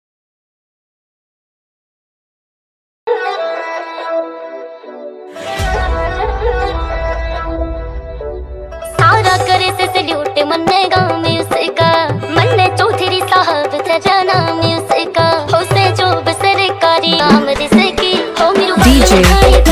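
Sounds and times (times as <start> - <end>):
Haryanvi song dance mix in tapori style: 5.4 - 19.7.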